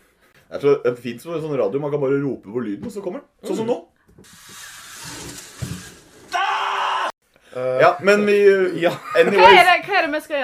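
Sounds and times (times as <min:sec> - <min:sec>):
speech: 0:00.5 - 0:05.5, 0:07.6 - 0:10.4
rough noise: 0:04.2 - 0:06.4
person screaming having their hair pulled out: 0:06.3 - 0:07.1.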